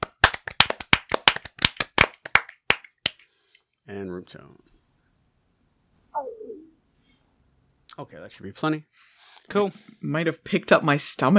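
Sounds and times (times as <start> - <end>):
several people clapping hands for sync: 0.0 - 3.3
speech: 3.9 - 4.7, 8.0 - 11.3.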